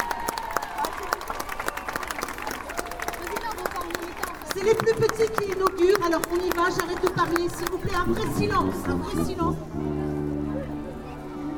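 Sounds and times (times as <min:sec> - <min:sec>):
audience applauding loudly: 0:00.0 - 0:08.2
speech: 0:04.7 - 0:09.9.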